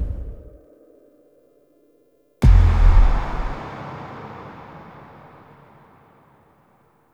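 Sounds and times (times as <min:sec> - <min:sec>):
death sound effect: 0:02.4 - 0:03.8.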